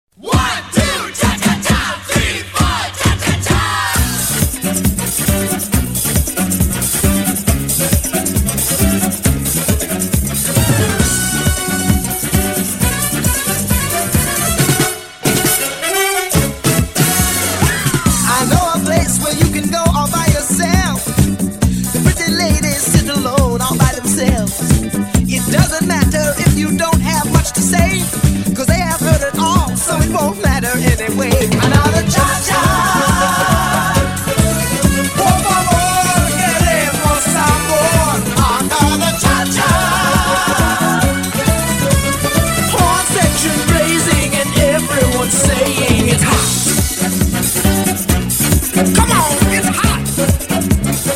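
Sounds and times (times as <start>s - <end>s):
cha cha music: 0.2s - 51.1s.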